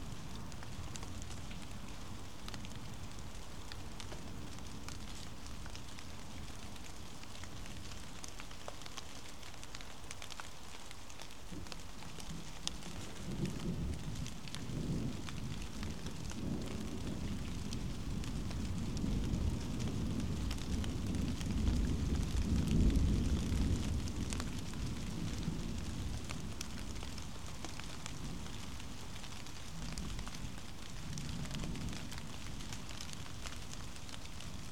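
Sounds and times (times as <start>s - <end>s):
rain on a suburban fence: 0.0s - 34.7s.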